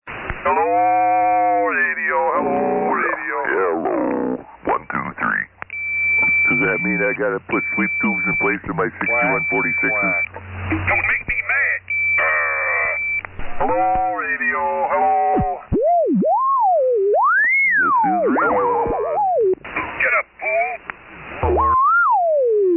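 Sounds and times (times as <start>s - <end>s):
SSB radio net tune-up: 0.3s - 16.4s, 17.2s - 22.1s.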